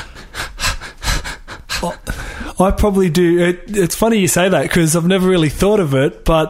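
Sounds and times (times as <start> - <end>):
person imitating a runner's rhythmic breathing: 0.0 - 2.6
speech: 1.8 - 6.4.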